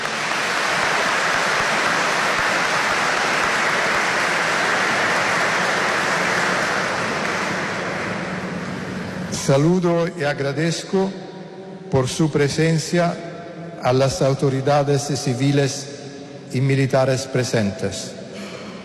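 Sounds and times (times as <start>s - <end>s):
audience applause: 0.0s - 9.2s
speech: 9.5s - 11.2s, 11.9s - 18.2s.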